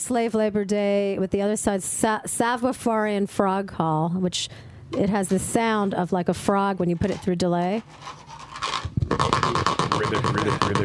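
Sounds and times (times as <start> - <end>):
speech: 0.1 - 8.4, 9.1 - 10.8
guiro percussion instrument being scraped: 6.9 - 10.8.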